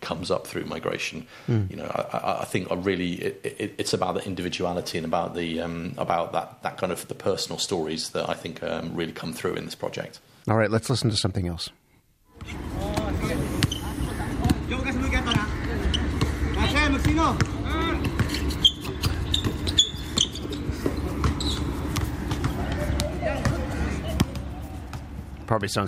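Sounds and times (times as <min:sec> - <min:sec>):
speech: 0:00.1 - 0:11.8, 0:25.5 - 0:25.8
basketball bouncing on the court in Dubai pickup game: 0:12.4 - 0:25.2
shuffling footsteps: 0:17.3 - 0:25.4.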